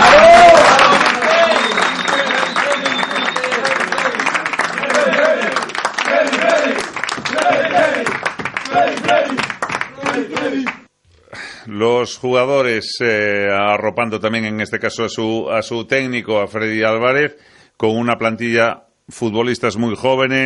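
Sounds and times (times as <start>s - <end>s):
applause at a press conference: 0.0s - 10.9s
speech: 12.2s - 20.4s.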